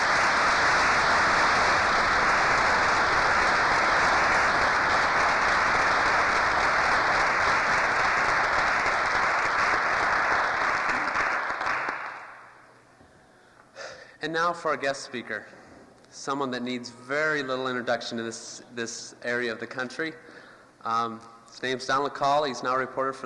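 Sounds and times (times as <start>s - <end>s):
audience applause: 0.0s - 12.6s
speech: 14.3s - 23.2s.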